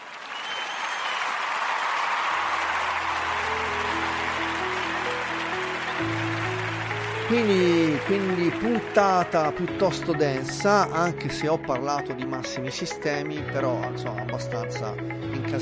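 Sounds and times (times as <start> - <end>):
crowd applauding: 0.0 - 11.2
speech: 7.3 - 15.6.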